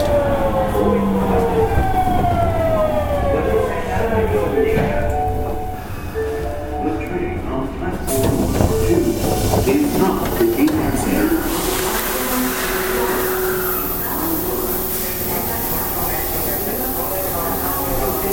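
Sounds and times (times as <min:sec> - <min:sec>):
Osaka subway 66 series train running: 0:00.0 - 0:18.3
bright hiss of wheel and rail noise: 0:08.1 - 0:18.3.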